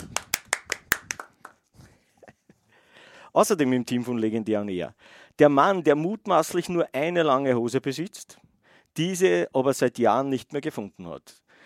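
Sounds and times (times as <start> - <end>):
applause: 0.0 - 1.7
speech: 3.4 - 8.4, 9.0 - 11.6.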